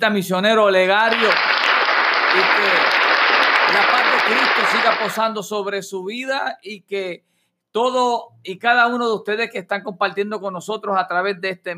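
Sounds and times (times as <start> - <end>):
speech: 0.0 - 1.6, 2.3 - 3.0, 3.7 - 11.7
audience applause: 1.1 - 5.2.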